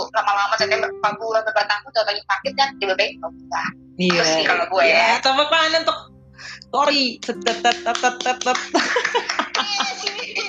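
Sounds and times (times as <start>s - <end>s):
speech: 0.2s - 10.4s
hands clapping: 7.2s - 10.4s
laughter: 7.6s - 10.4s.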